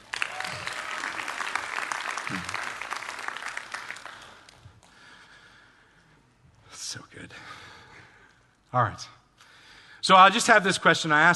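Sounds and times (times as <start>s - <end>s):
audience applause at a faith-based talk: 0.0s - 4.6s
speech: 8.7s - 9.2s, 10.1s - 11.3s.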